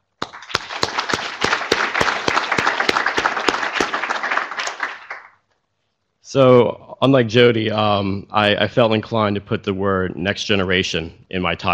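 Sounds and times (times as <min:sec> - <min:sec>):
audience applause: 0:00.2 - 0:05.4
speech: 0:06.3 - 0:11.7.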